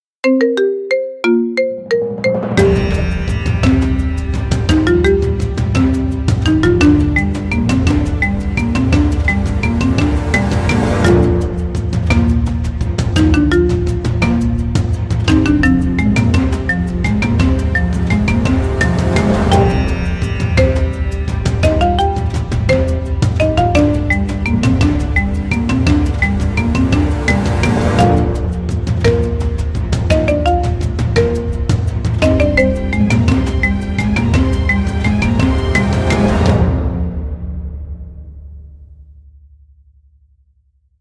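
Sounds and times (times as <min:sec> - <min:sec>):
marimba melody: 0:00.2 - 0:36.6.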